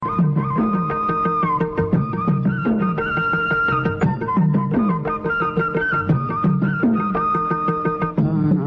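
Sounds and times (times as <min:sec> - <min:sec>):
flute ringtone: 0:00.0 - 0:08.5.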